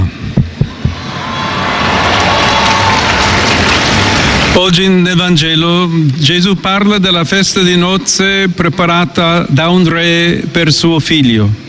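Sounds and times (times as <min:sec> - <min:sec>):
low thumps: 0:00.0 - 0:01.1
large crowd applause: 0:00.7 - 0:04.8
speech: 0:04.6 - 0:11.6.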